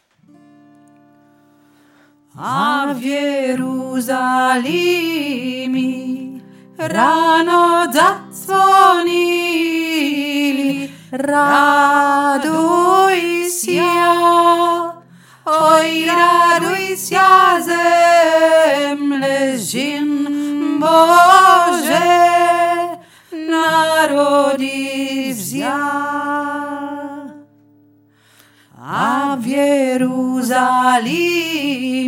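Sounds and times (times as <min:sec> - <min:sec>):
Ukrainian Christmas song lead vocal: 0:02.3 - 0:27.6, 0:28.4 - 0:32.0.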